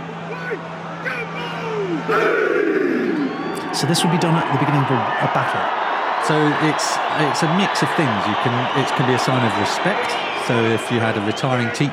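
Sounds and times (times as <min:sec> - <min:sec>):
steady crowd roar at a rugby match: 0:00.0 - 0:11.9
many deep voices bellowing a haka war chant at a rugby match: 0:02.0 - 0:03.3
speech: 0:02.1 - 0:02.8, 0:03.8 - 0:11.9.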